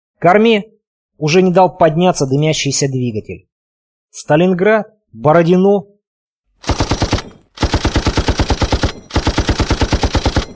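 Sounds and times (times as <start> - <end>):
speech: 0.2 - 3.5, 4.1 - 5.9
heavy machine gun firing: 6.6 - 10.5.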